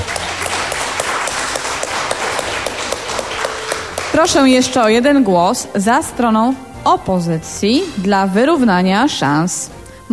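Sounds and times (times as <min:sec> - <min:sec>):
audience applause: 0:00.0 - 0:04.5
speech: 0:04.2 - 0:10.1.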